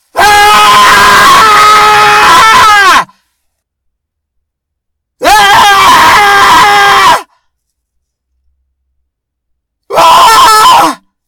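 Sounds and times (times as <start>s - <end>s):
person screaming: 0.2s - 3.1s, 5.2s - 7.3s, 9.9s - 11.0s.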